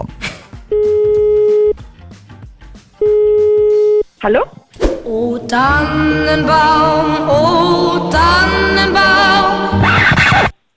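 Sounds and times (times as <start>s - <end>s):
low music or noise: 0.0s - 10.7s
phone ringback tone: 0.7s - 1.8s, 3.0s - 4.1s
speech: 4.2s - 10.5s.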